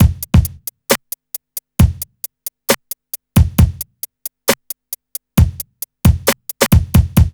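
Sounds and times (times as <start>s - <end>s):
hip hop and R&B beat: 0.0s - 7.3s.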